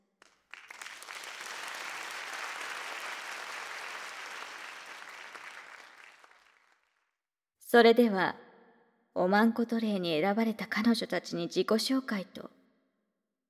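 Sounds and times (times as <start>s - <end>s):
audience applause: 0.2s - 6.9s
speech: 7.7s - 8.4s, 9.2s - 12.6s.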